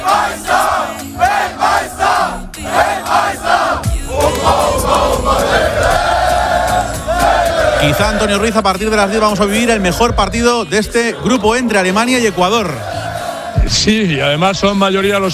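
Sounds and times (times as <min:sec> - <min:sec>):
football crowd chanting in a New Jersey street before Germany vs Ecuador World Cup match: 0:00.0 - 0:13.7
football crowd shouting and cheering in a New Jersey street: 0:00.0 - 0:15.3
speech: 0:07.9 - 0:12.9, 0:13.7 - 0:15.3.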